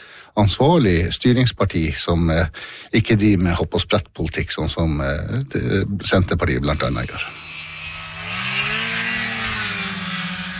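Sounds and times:
speech: 0:00.4 - 0:07.5
snowmobile engine revving: 0:06.8 - 0:10.5.

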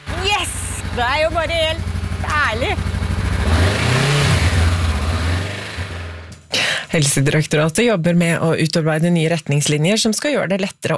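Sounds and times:
motorcycle engine revving: 0:00.0 - 0:06.4
speech: 0:01.0 - 0:03.0, 0:06.9 - 0:10.9.

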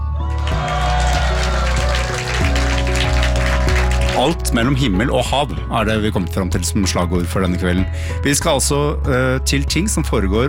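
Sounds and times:
audience applause: 0:00.3 - 0:04.5
speech: 0:04.2 - 0:10.4.

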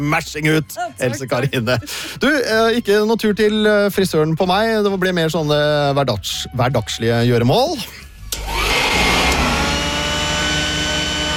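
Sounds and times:
speech: 0:00.0 - 0:08.0
vacuum cleaner running: 0:08.3 - 0:11.3.

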